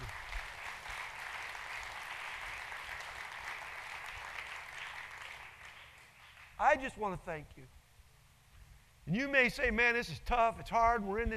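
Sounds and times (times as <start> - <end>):
crowd applauding: 0.0 - 6.6
speech: 6.6 - 7.8, 9.0 - 11.3.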